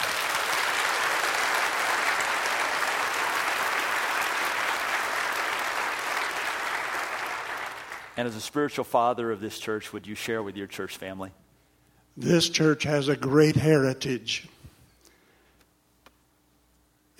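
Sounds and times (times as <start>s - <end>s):
church audience applause: 0.0s - 8.2s
speech: 8.2s - 11.4s, 12.2s - 14.6s.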